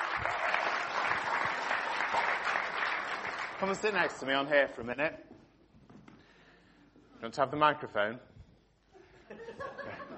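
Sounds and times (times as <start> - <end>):
audience clapping: 0.0 - 4.6
speech: 3.6 - 5.4, 7.2 - 8.3
laughter: 9.0 - 10.1.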